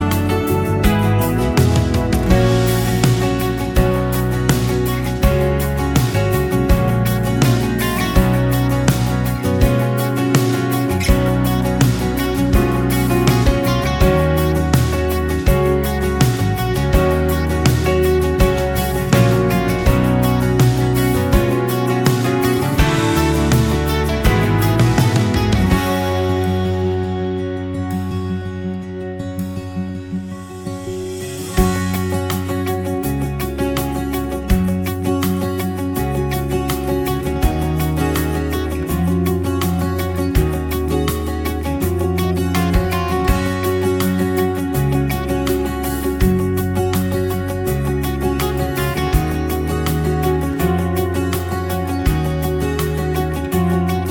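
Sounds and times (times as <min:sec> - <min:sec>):
playback without backing vocals: 0:00.0 - 0:54.0.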